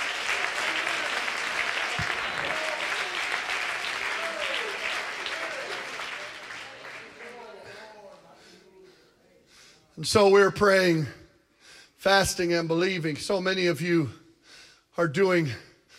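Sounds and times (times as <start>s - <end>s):
audience clapping hands: 0.0s - 8.0s
speech: 10.0s - 11.2s, 12.0s - 14.2s, 15.0s - 15.7s.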